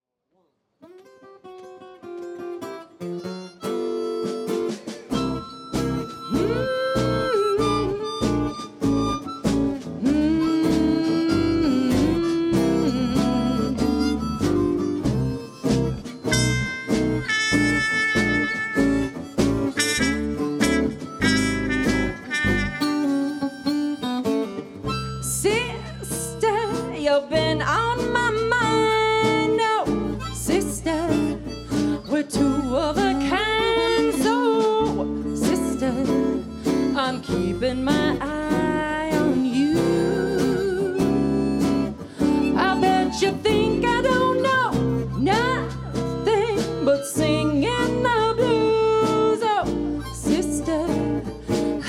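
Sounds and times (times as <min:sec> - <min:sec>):
blues music: 0:00.8 - 0:51.8.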